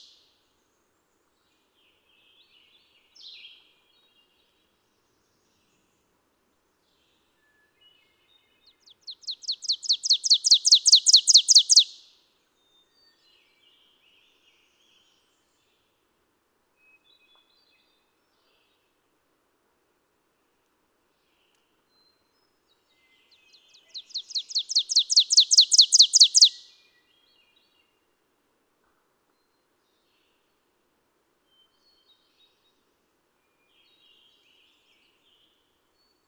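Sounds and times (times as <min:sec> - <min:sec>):
ovenbird call: 0:09.2 - 0:11.9, 0:23.9 - 0:26.6.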